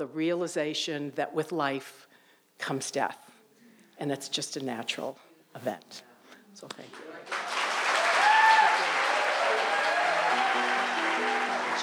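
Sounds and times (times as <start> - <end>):
speech: 0.0 - 3.3, 4.0 - 7.4
audience applause: 7.0 - 11.8.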